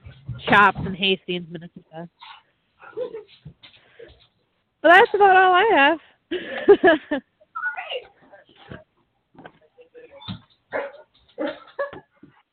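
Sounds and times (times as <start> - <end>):
speech: 0.4 - 3.8, 4.8 - 7.3
dogs barking: 10.7 - 11.7.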